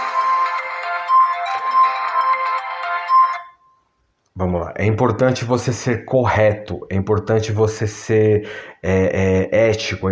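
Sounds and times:
phone ringtone for an incoming call: 0.0s - 3.9s
speech: 4.4s - 10.0s.

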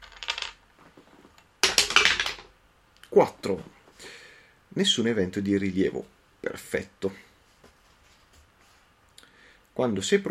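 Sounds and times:
die being rolled: 0.0s - 2.5s
speech: 3.2s - 3.8s, 4.7s - 7.3s, 9.8s - 10.3s.

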